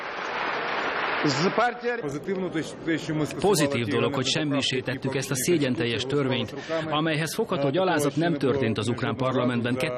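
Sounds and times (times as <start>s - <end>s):
parliament members applauding a vote: 0.0s - 2.5s
speech: 1.2s - 9.9s.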